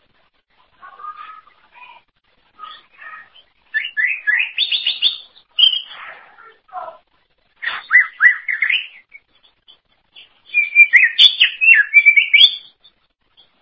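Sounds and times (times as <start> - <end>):
greater green leafbird song: 2.6 - 6.2, 7.6 - 13.6.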